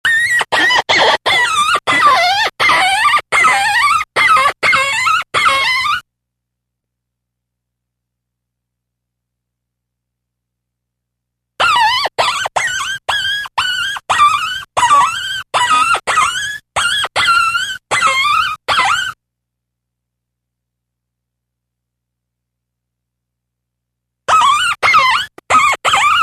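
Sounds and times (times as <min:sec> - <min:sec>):
fox giving sharp high harmonic yelps: 0:00.0 - 0:06.0, 0:11.6 - 0:19.2, 0:24.3 - 0:26.2.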